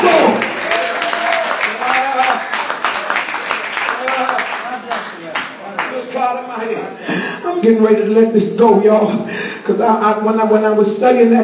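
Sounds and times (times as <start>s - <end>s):
audience clapping hands: 0.0s - 6.2s
speech: 7.6s - 11.4s.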